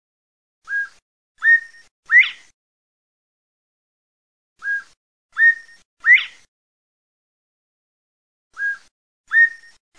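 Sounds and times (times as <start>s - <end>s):
partridge whistled call: 0.6s - 2.5s, 4.6s - 6.5s, 8.5s - 9.9s.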